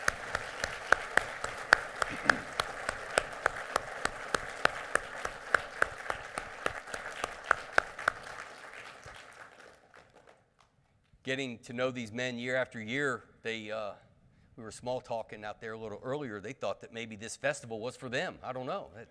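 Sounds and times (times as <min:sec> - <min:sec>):
audience round of applause: 0:00.0 - 0:10.4
speech: 0:11.3 - 0:14.0, 0:14.6 - 0:19.0.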